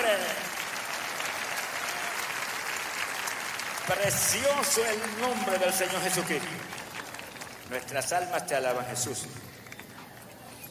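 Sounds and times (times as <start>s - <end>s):
audience applause: 0.0s - 8.3s
speech: 3.9s - 6.8s, 7.7s - 9.5s.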